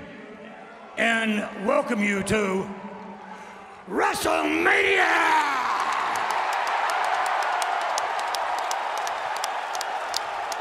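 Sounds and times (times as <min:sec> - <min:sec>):
speech: 0:01.0 - 0:02.9, 0:03.9 - 0:05.5
wrestling fans cheering at WrestleMania: 0:02.9 - 0:10.6.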